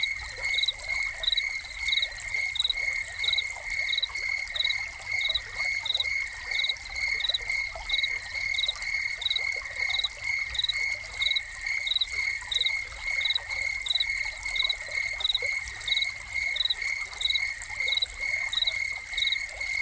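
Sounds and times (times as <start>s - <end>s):
crickets chirping: 0.0s - 19.7s
fountain water splashing: 0.0s - 19.7s.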